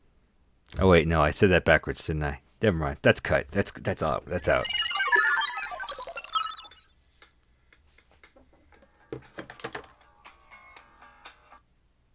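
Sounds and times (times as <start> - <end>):
speech: 0.8 - 4.8, 9.1 - 9.4
electronic alarm ringing: 4.4 - 6.8.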